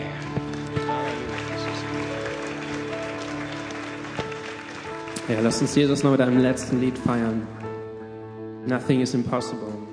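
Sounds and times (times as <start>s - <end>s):
audience applause from a large crowd: 0.0s - 7.9s
speech: 5.3s - 7.6s, 8.7s - 9.9s.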